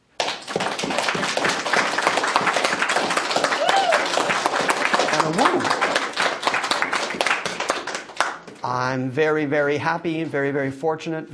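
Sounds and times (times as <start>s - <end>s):
rousing round of applause: 0.1s - 8.5s
speech: 8.9s - 11.3s.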